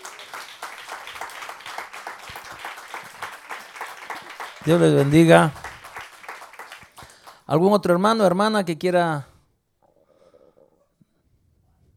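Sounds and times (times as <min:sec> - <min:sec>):
church congregation applauding: 0:00.0 - 0:08.3
speech: 0:04.6 - 0:05.6, 0:07.5 - 0:09.3.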